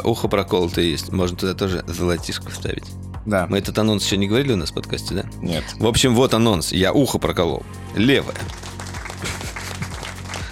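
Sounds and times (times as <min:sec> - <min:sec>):
speech: 0:00.0 - 0:09.4
applause in the background: 0:08.0 - 0:10.5.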